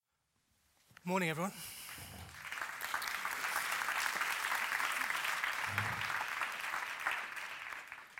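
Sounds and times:
speech: 1.0s - 1.8s
audience applause: 1.7s - 8.1s.

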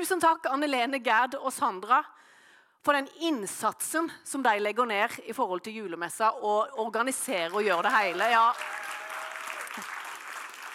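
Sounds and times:
speech: 0.0s - 9.0s
audience applause: 7.6s - 10.7s.

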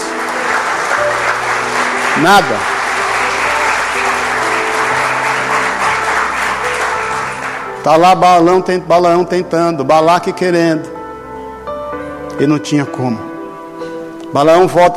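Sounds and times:
audience applauding: 0.0s - 7.9s
speech: 2.2s - 2.7s, 7.8s - 10.9s, 12.4s - 13.3s, 14.3s - 14.9s.

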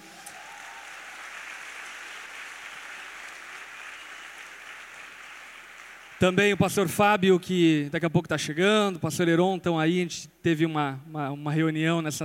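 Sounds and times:
crowd applause: 0.0s - 6.4s
speech: 6.2s - 12.2s.

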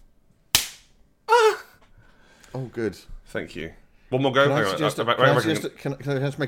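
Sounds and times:
vocal imitation of a slap: 0.5s - 1.6s
speech: 2.5s - 6.4s.

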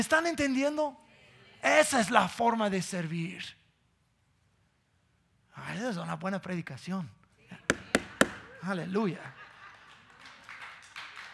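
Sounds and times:
speech: 0.0s - 3.6s, 5.6s - 7.2s, 8.6s - 9.4s
audience applause: 9.5s - 11.3s.

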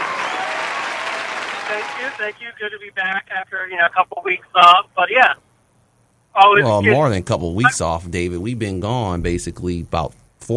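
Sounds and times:
applause for a caller on a sports talk show: 0.0s - 2.4s
speech: 1.7s - 5.4s, 6.4s - 10.5s.

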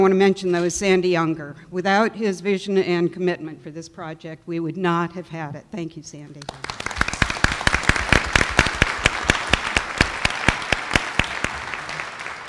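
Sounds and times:
speech: 0.0s - 6.8s
audience applause: 6.4s - 12.4s.

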